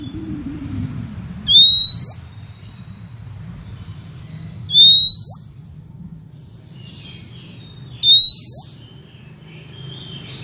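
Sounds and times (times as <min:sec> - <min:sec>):
female Oriental magpie-robin calling: 0:01.5 - 0:05.7, 0:06.3 - 0:10.4.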